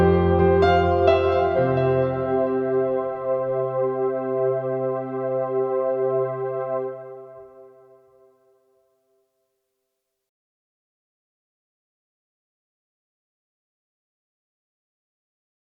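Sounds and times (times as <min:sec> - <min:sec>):
grand piano with effects: 0:00.0 - 0:08.4.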